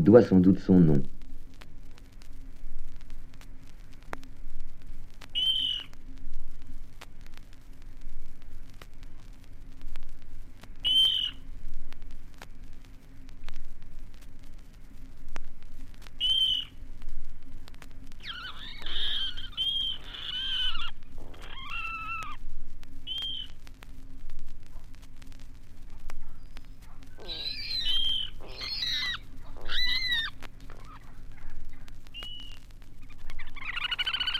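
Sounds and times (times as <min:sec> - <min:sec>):
speech: 0:00.0 - 0:01.2
steady low hiss: 0:00.0 - 0:34.3
water rail calling in the reeds: 0:05.4 - 0:05.9, 0:10.8 - 0:11.4, 0:16.2 - 0:16.7, 0:18.2 - 0:22.4, 0:23.1 - 0:23.6, 0:27.2 - 0:34.3.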